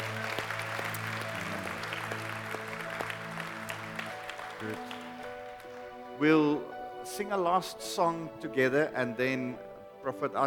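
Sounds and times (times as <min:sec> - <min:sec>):
church congregation clapping during a Sunday service: 0:00.0 - 0:06.1
speech: 0:04.6 - 0:04.9, 0:06.2 - 0:10.4.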